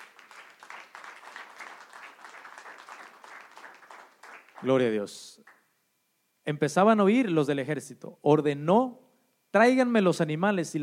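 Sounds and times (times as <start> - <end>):
audience applause: 0.0 - 4.8
speech: 4.6 - 5.5, 6.4 - 10.8.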